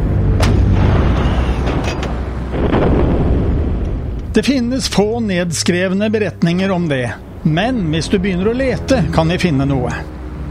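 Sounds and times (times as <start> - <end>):
heavy artillery cannon fire booming: 0.4 - 4.4
speech: 4.4 - 10.2.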